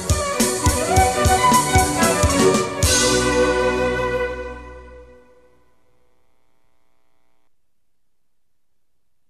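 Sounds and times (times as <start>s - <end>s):
flute playing a Baroque piece: 0.0s - 5.5s.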